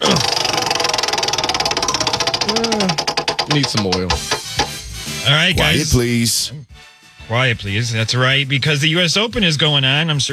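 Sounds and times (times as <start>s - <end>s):
spinning prize wheel pointer clicking: 0.0s - 4.8s
speech: 3.6s - 4.5s, 5.3s - 10.3s.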